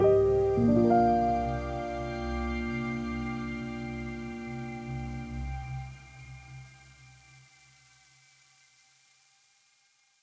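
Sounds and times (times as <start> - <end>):
piano: 0.0 - 7.0.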